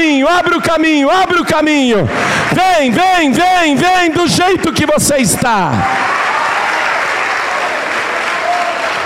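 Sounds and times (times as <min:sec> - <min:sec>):
speech: 0:00.0 - 0:06.3
large church audience clapping: 0:05.3 - 0:09.0.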